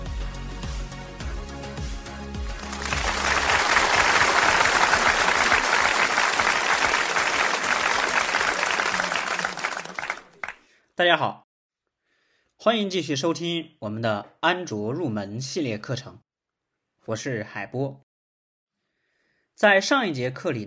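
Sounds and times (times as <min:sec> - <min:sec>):
music: 0:00.0 - 0:04.0
audience applause: 0:02.6 - 0:10.6
speech: 0:11.0 - 0:11.4, 0:12.6 - 0:16.2, 0:17.0 - 0:18.0, 0:19.6 - 0:20.6.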